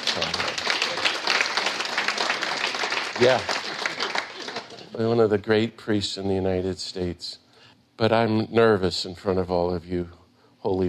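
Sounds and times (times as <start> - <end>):
audience applause: 0.0 - 4.9
speech: 3.2 - 3.6, 5.0 - 7.4, 8.0 - 10.8.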